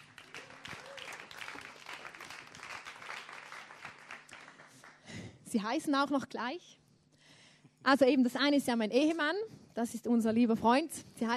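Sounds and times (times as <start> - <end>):
audience applause: 0.0 - 5.0
speech: 5.5 - 6.8, 7.8 - 11.3.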